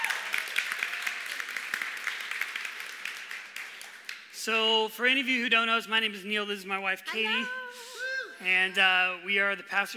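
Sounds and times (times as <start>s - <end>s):
audience applause: 0.0s - 4.2s
speech: 4.4s - 9.9s.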